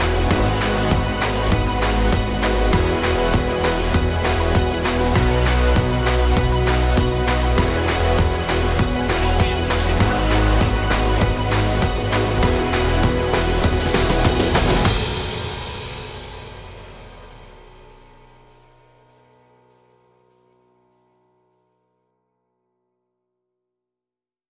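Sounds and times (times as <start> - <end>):
strings: 0.0 - 18.1.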